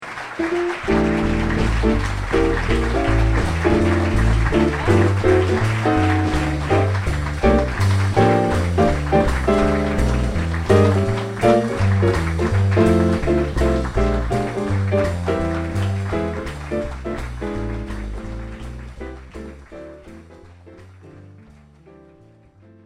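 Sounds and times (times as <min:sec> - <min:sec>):
closing music: 0:00.0 - 0:22.8.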